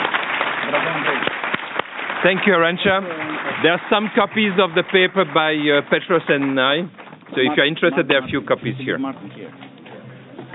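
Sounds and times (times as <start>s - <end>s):
audience applause for panelists: 0.0s - 8.2s
speech: 2.2s - 9.7s.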